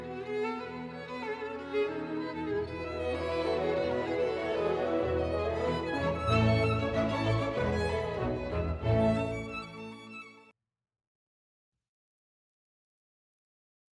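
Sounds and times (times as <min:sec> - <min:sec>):
third movement of a violin concerto: 0:00.0 - 0:10.5.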